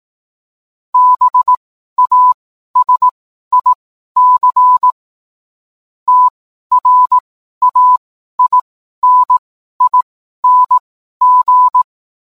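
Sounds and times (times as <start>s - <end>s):
morse code beeps: 1.0s - 5.0s, 6.1s - 11.9s.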